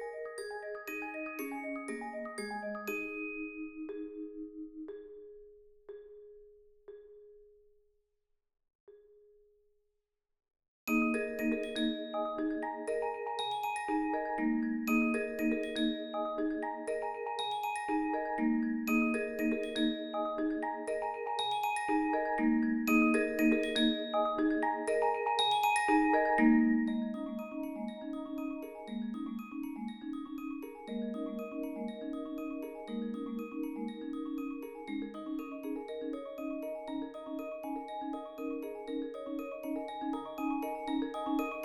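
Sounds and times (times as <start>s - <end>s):
marimba in a percussion ensemble: 0.0s - 7.6s, 10.9s - 41.6s
vibraphone in a percussion ensemble: 0.0s - 7.6s, 10.9s - 41.6s
xylophone in a percussion ensemble: 0.0s - 7.6s, 10.9s - 41.6s
bells in a percussion ensemble: 10.9s - 41.6s.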